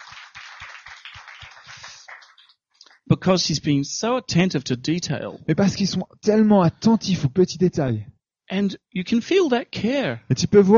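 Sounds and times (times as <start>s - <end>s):
rhythmic audience applause: 0.0s - 3.1s
speech: 3.1s - 10.7s.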